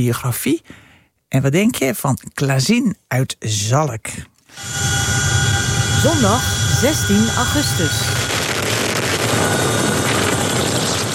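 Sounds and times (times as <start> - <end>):
speech: 0.0 - 5.1, 6.0 - 8.2
Dutch Chinook helicopter rotor and engine roar fighting a large wildfire in Belgium: 4.6 - 11.1.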